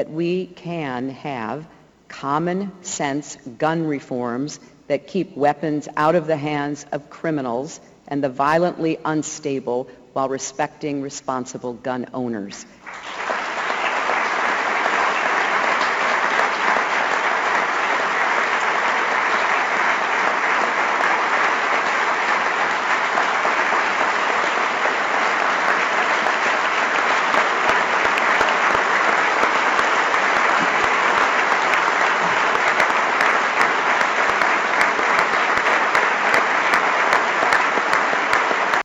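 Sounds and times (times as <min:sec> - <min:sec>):
speech: 0:00.0 - 0:13.2
standing ovation applause from a large audience: 0:12.9 - 0:38.8.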